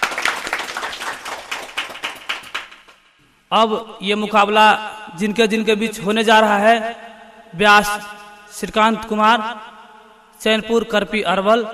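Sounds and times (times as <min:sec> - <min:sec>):
audience clapping in welcome: 0:00.0 - 0:03.1
speech: 0:03.5 - 0:09.7, 0:10.4 - 0:11.7.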